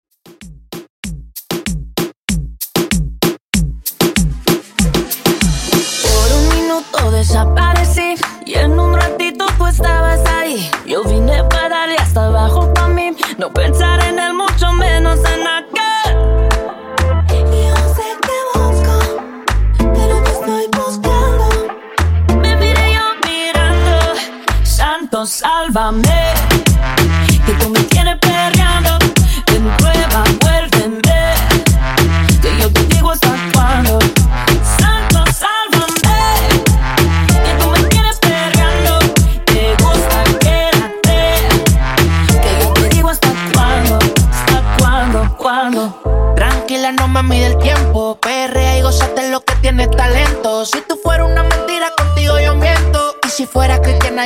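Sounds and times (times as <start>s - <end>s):
reggaeton beat at 96 BPM: 0.1s - 54.2s.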